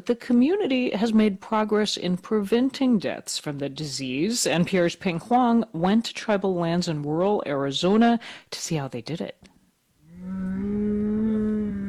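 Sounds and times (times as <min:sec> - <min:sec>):
speech: 0:00.0 - 0:09.4
cattle mooing in a pen at a ranch on the San Carlos Apache Reservation in Arizona: 0:10.0 - 0:11.8.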